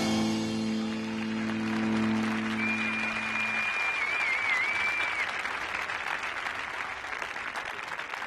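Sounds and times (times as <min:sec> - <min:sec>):
applause: 0:00.2 - 0:08.2.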